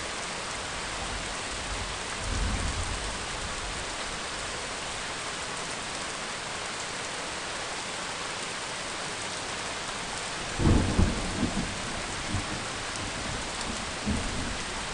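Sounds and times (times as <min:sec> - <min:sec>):
rain: 0:00.0 - 0:14.9
thunder: 0:10.6 - 0:14.7.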